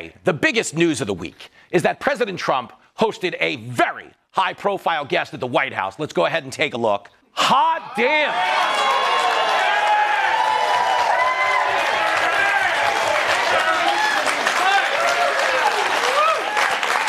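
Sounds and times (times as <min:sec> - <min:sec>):
speech: 0:00.1 - 0:09.6
large crowd applause: 0:08.2 - 0:17.0.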